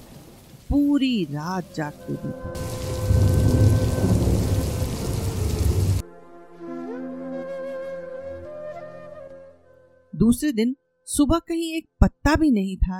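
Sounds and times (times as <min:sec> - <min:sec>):
heavy rain: 0:00.0 - 0:06.0
speech: 0:00.7 - 0:03.0, 0:10.3 - 0:12.9
thunder: 0:02.1 - 0:06.0.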